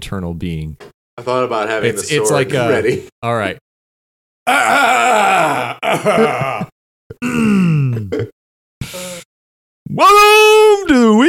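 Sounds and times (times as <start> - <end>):
speech: 0.0 - 3.6, 4.5 - 8.3, 9.9 - 11.2
person burping: 4.5 - 8.4.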